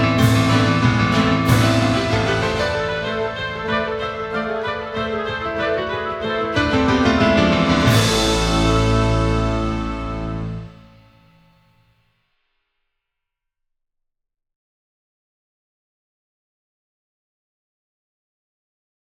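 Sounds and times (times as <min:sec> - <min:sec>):
fast music piece: 0:00.0 - 0:10.9.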